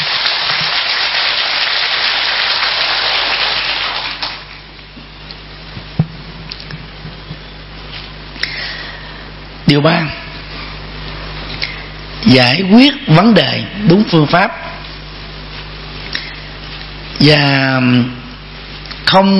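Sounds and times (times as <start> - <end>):
loud audience applause: 0.0 - 4.5
speech: 9.7 - 10.2, 12.3 - 14.8, 17.2 - 18.2, 19.1 - 19.3.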